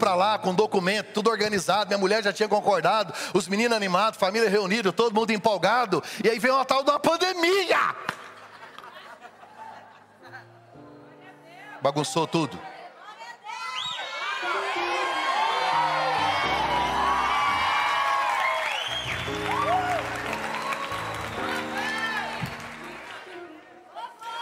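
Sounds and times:
speech: 0.1 - 8.2, 11.8 - 12.7
laughter: 8.2 - 10.7
audience applause and cheering: 14.0 - 24.3.

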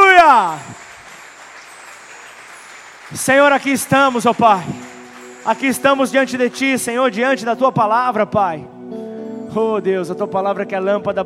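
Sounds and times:
audience clapping hands: 0.0 - 7.5
speech: 3.1 - 11.2.

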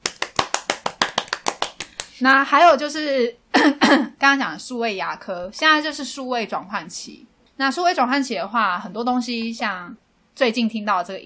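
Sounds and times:
hands clapping: 0.0 - 2.2
speech: 2.2 - 11.2.

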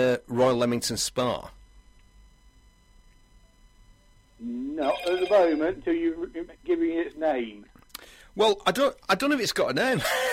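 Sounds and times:
speech: 0.0 - 1.6, 4.4 - 7.7, 8.4 - 10.3
phone ringing: 4.4 - 6.9.

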